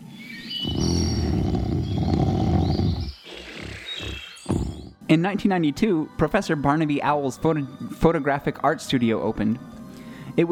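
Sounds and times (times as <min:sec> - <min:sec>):
Brer Bear snoring sound effect: 0:00.6 - 0:05.0
speech: 0:05.1 - 0:09.7.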